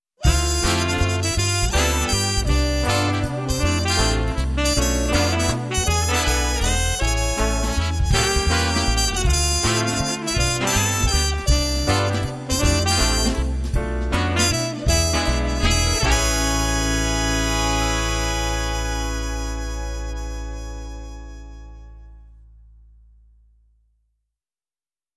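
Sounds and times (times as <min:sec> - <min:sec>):
jazz brass: 0:00.2 - 0:22.6.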